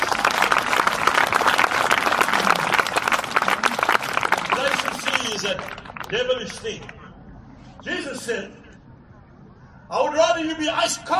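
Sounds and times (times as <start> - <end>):
audience applause: 0.0 - 6.2
speech: 6.1 - 7.0, 7.8 - 8.6, 9.9 - 11.1.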